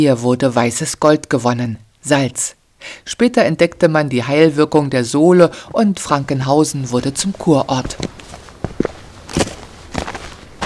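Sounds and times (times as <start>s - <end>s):
speech: 0.0s - 9.5s
footsteps hiking uphill on the Südkyffhäuser geopath trail from Bad Frankenhausen: 6.8s - 10.6s.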